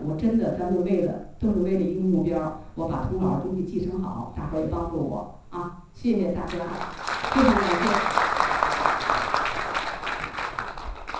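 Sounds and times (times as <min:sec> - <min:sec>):
speech: 0:00.1 - 0:08.3
room full of people applauding: 0:06.5 - 0:11.1.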